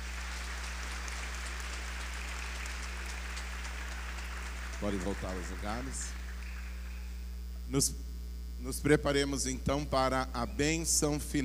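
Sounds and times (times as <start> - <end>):
crowd applauding: 0.0 - 7.2
low electrical hum: 0.0 - 11.4
speech: 4.8 - 6.2, 7.7 - 11.4.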